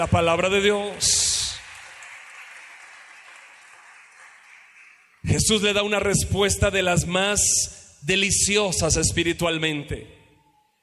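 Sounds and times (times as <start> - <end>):
speech: 0.0 - 1.3, 5.3 - 10.2
audience applauding: 0.0 - 5.3.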